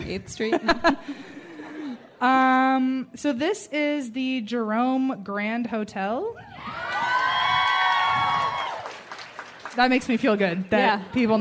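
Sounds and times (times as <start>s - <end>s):
speech: 0.1s - 1.4s, 2.2s - 7.0s, 9.8s - 11.3s
audience cheering and clapping: 6.6s - 11.3s.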